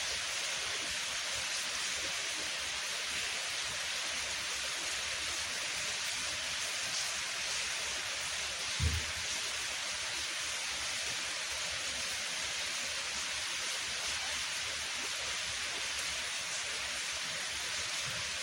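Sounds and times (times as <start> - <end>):
rain falling: 0.0 - 18.4
soft thud: 8.8 - 9.2.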